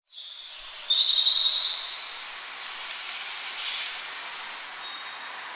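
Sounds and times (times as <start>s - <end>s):
nocturnal bird singing thin high whistled phrases on a street in Paris: 0.0s - 2.2s, 4.8s - 5.3s.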